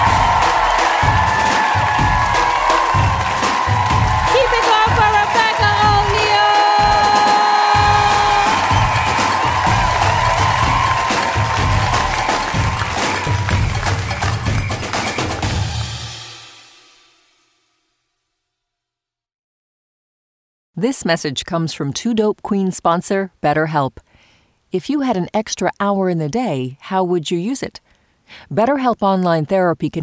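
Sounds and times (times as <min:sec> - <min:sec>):
audience applause: 0:00.0 - 0:16.1
speech: 0:20.8 - 0:24.1, 0:24.7 - 0:30.0.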